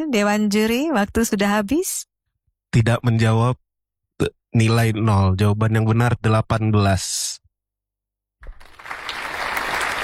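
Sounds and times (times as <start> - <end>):
speech: 0.0 - 2.1, 2.7 - 3.6, 4.2 - 7.4
audience applause: 8.4 - 10.0.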